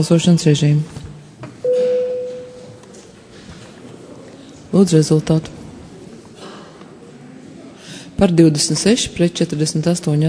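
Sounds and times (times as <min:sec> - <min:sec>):
speech: 0:00.0 - 0:01.0, 0:04.8 - 0:05.6, 0:08.2 - 0:10.2
faint room murmur: 0:00.0 - 0:10.2
chairman's electronic bell tone in parliament: 0:01.6 - 0:02.9.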